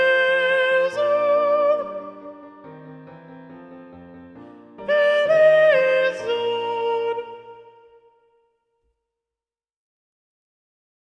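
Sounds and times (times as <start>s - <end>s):
soprano singing: 0.0s - 8.4s.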